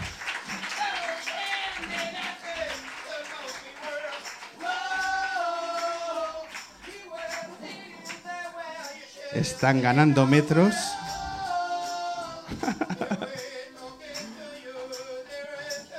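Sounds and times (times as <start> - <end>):
audience applause in a café: 0.0 - 8.4
laughter: 7.4 - 8.2, 12.2 - 13.7
man talking loudly: 9.4 - 11.0
speech: 9.4 - 11.0.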